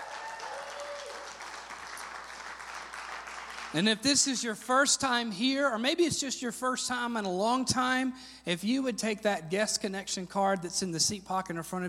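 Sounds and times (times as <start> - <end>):
church congregation applauding to welcome members joining online: 0.0 - 4.0
speech: 3.7 - 11.8.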